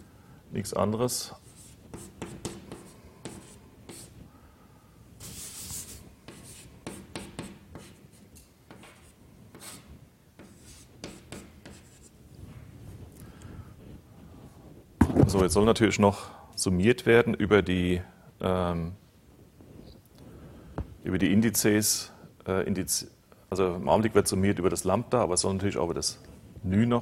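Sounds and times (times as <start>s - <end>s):
speech: 0.5s - 1.5s, 15.4s - 19.0s, 21.1s - 27.0s
writing on a board: 1.4s - 4.2s, 5.2s - 12.1s.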